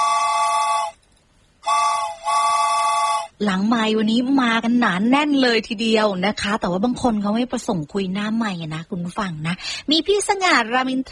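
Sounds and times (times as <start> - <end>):
train whistle sound effect: 0.0 - 1.0, 1.6 - 3.3
speech: 3.4 - 11.0.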